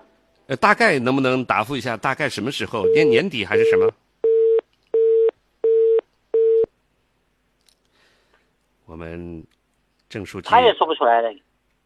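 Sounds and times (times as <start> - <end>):
speech: 0.5 - 4.0, 8.9 - 11.5
telephone busy tone beeps after a call is hung up: 2.8 - 6.7.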